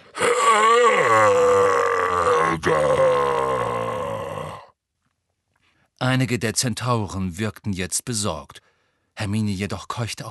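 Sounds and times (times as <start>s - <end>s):
person imitating a giant's roar: 0.0s - 4.7s
speech: 6.1s - 10.2s.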